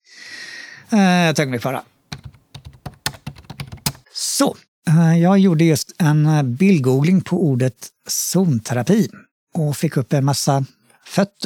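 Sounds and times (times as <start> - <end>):
speech: 0.9 - 2.0, 4.4 - 11.4
typing on a computer keyboard: 2.1 - 4.0.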